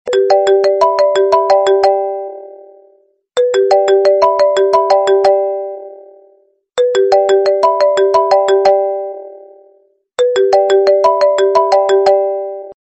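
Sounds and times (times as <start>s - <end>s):
iPhone SMS alert: 0.1s - 2.2s, 3.4s - 5.4s, 6.8s - 9.3s, 10.2s - 12.8s.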